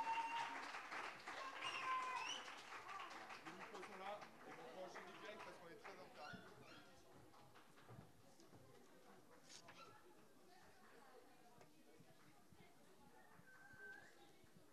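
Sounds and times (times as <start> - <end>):
audience applause: 0.0 - 6.1.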